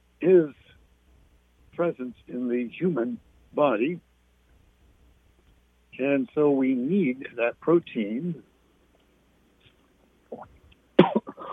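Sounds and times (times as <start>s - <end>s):
speech: 0.2s - 0.6s, 1.8s - 4.1s, 6.0s - 8.5s
person coughing after something went down the wrong way: 11.0s - 11.5s.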